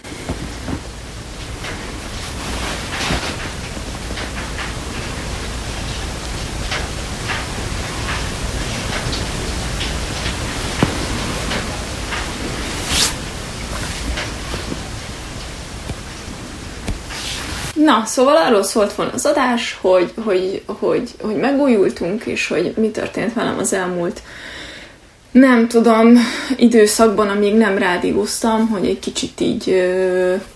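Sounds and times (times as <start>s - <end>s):
heavy rain: 0.0s - 17.8s
speech: 17.8s - 24.6s, 25.3s - 30.5s.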